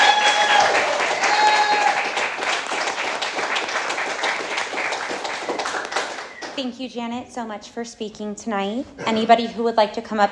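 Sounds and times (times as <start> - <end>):
audience applause: 0.0 - 6.6
speech: 6.6 - 10.3.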